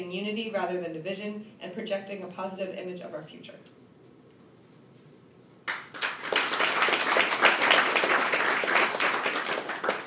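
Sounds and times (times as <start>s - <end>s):
speech: 0.0s - 3.8s
audience applause: 5.7s - 10.0s.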